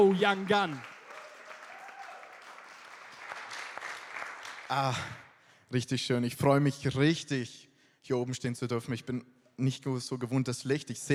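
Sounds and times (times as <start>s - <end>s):
speech: 0.0s - 0.9s, 4.7s - 11.1s
audience applause: 0.0s - 5.2s.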